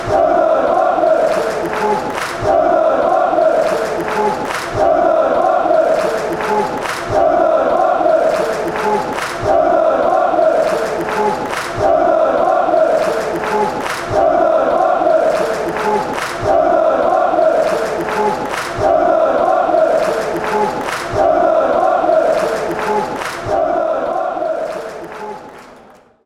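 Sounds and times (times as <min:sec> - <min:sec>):
people singing in Lokeren: 0:00.0 - 0:25.9.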